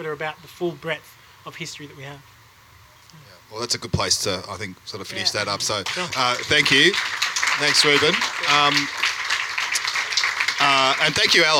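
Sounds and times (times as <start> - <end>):
speech: 0.0 - 2.4, 3.1 - 9.1, 10.6 - 11.5
audience applause: 5.3 - 11.5.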